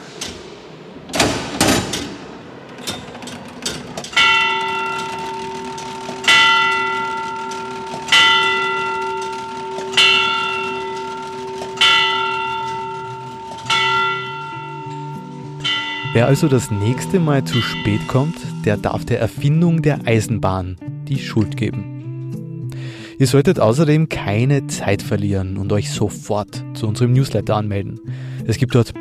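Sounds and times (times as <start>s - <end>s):
clock's hour-striking mechanism ringing bells: 2.6s - 19.9s
speech: 16.2s - 21.9s, 23.2s - 28.9s.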